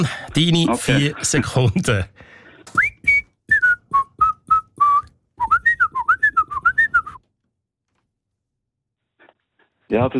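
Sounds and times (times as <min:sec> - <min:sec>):
speech: 0:00.0 - 0:02.8, 0:09.9 - 0:10.1
person whistling a pop song melody: 0:02.7 - 0:07.2.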